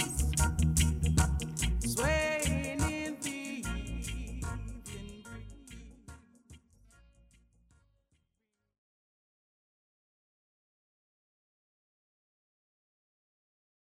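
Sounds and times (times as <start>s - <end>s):
blues music: 0.0s - 7.2s.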